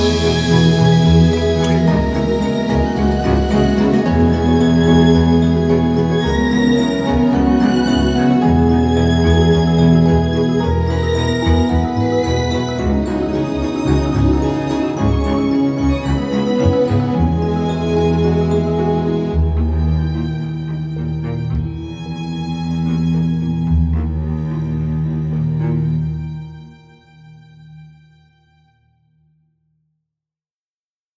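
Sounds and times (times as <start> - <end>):
magical ethereal strings: 0.0 - 29.0.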